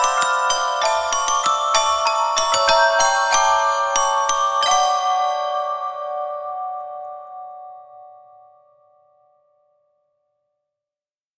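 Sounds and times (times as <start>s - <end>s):
handbell: 0.0s - 7.3s.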